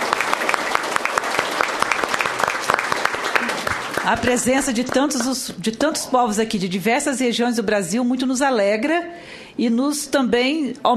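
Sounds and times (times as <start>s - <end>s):
crowd applauding: 0.0s - 5.5s
speech: 4.1s - 10.9s.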